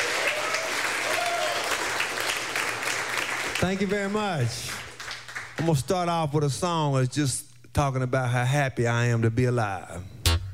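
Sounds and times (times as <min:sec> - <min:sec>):
audience applause welcoming a performer in Knoxville: 0:00.0 - 0:05.7
speech: 0:03.6 - 0:04.8, 0:05.6 - 0:10.2.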